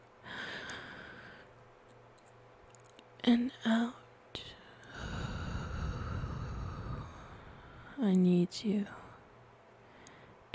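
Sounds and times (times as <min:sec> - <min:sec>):
slow breath in during a guided breathing relaxation: 0:00.2 - 0:01.5, 0:04.8 - 0:08.0
speech: 0:03.2 - 0:04.0, 0:08.0 - 0:09.0.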